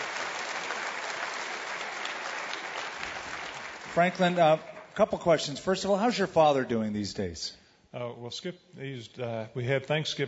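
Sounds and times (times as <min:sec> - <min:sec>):
audience applause: 0:00.0 - 0:05.0
speech: 0:03.9 - 0:10.2.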